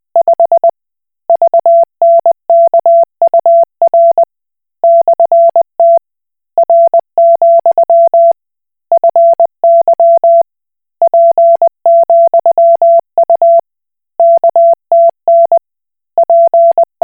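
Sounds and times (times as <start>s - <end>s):
Koch Morse code beeps: 1.3s - 6.0s, 6.6s - 8.4s, 9.0s - 10.4s, 11.0s - 13.6s, 14.2s - 15.6s, 16.2s - 17.0s.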